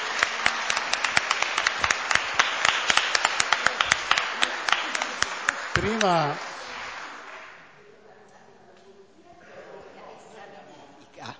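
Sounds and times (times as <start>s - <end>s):
audience applause: 0.0s - 7.7s
speech: 5.8s - 6.5s.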